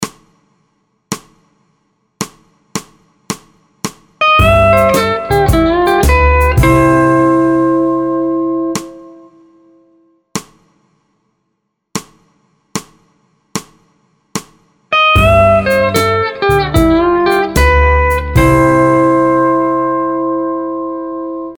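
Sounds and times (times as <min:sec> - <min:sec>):
musical vamp in C in four four: 0:04.3 - 0:09.6, 0:15.1 - 0:21.5.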